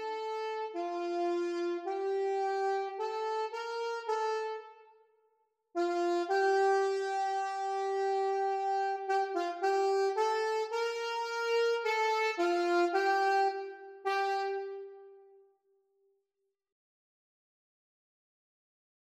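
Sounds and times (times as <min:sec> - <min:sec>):
alto and tenor saxophone duet: 0:00.0 - 0:04.9, 0:05.8 - 0:15.4.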